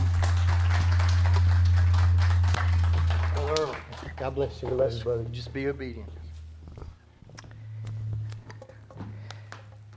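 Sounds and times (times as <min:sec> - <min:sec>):
audience clapping hands: 0:00.0 - 0:05.2
speech: 0:04.2 - 0:06.2.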